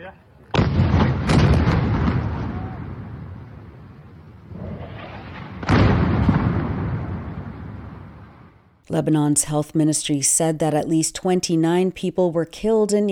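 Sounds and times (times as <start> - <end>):
heavy explosions from Israeli airstrikes on a building in Beirut: 0.5 - 8.8
speech: 8.9 - 13.1.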